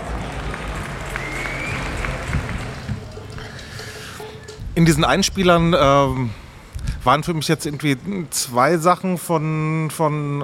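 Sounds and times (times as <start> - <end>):
applause: 0.0 - 4.2
speech: 4.8 - 6.4, 7.0 - 10.4.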